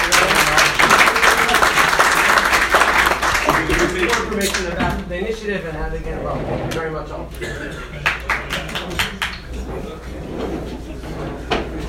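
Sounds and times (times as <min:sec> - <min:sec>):
audience applause: 0:00.0 - 0:04.7, 0:07.9 - 0:09.6
speech: 0:04.4 - 0:08.2.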